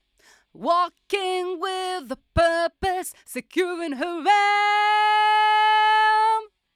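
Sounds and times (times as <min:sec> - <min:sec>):
vocals: 0:00.2 - 0:06.6.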